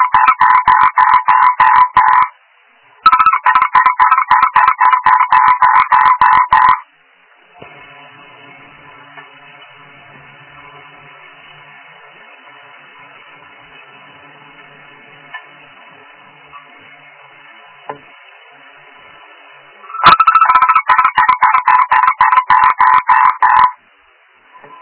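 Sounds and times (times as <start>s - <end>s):
frog croaking in harsh pulses: 0.0s - 2.4s, 3.0s - 6.9s, 19.9s - 23.8s.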